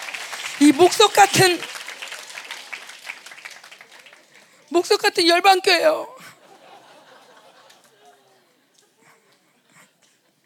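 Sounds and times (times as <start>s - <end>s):
hand clapping: 0.0s - 4.6s
speech: 0.6s - 1.8s, 4.7s - 6.2s
laughter: 6.2s - 10.4s.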